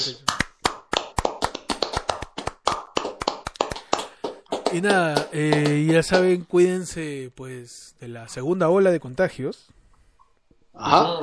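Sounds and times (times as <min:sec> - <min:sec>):
speech: 0:00.0 - 0:00.3, 0:04.7 - 0:09.8, 0:10.8 - 0:11.2
people clapping: 0:00.2 - 0:06.4.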